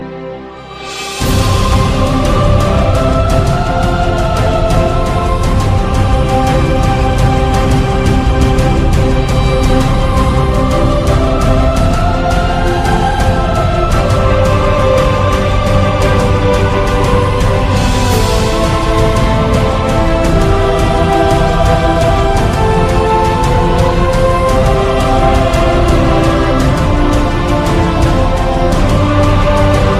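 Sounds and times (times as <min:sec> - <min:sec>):
fantasy celtic music: 0:00.0 - 0:29.9.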